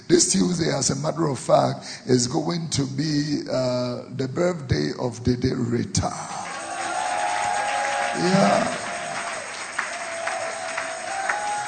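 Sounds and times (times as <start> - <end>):
speech: 0.1 - 6.4, 8.2 - 8.8
crowd hand clapping: 6.3 - 11.6.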